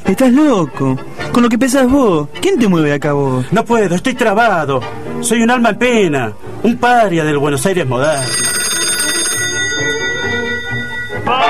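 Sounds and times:
speech: 0.1s - 8.5s
telephone ringing: 8.0s - 11.4s.

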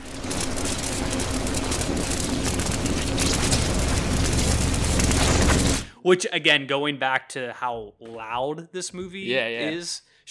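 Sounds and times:
crackling electricity from a Tesla machine: 0.0s - 5.9s
speech: 6.0s - 10.3s.

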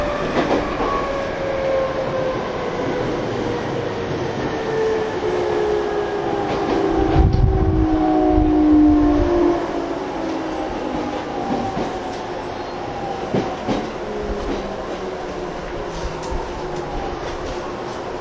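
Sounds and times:
TWR 70-000 series train inverter whine on the Saikyo Line rapid service: 0.0s - 18.1s
train rumble and rail clatter: 0.0s - 18.1s.

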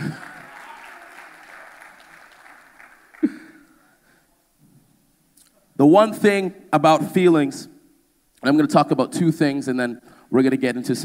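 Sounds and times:
audience clapping: 0.0s - 4.0s
speech: 5.8s - 7.7s, 8.4s - 11.0s.

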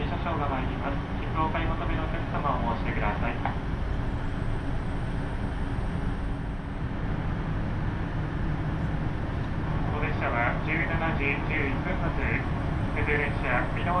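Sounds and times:
voices: 0.0s - 3.6s, 9.8s - 13.9s
KiHa 75 diesel railcar rumble on the Takayama Main Line: 0.0s - 13.9s.

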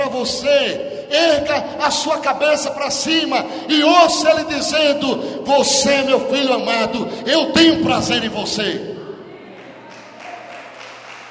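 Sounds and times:
speech: 0.2s - 8.9s
audience applause: 9.6s - 11.2s.

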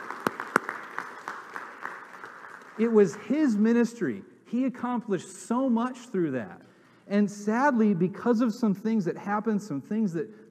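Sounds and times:
audience applauding: 0.0s - 3.6s
speech: 2.8s - 10.5s.

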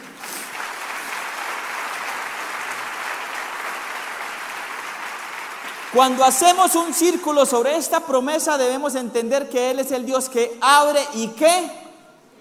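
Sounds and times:
audience applause: 0.0s - 7.0s
speech: 5.9s - 11.8s.

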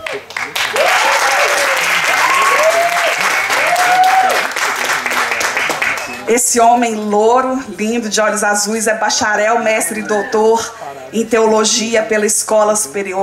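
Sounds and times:
audience applause: 0.0s - 6.3s
speech: 6.3s - 13.2s.

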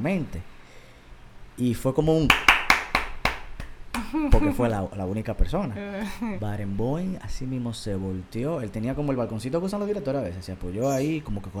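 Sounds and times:
speech: 0.0s - 0.5s, 1.6s - 2.5s, 4.1s - 11.5s
hands clapping enthusiastically: 2.2s - 4.8s
laughter: 4.0s - 4.8s.

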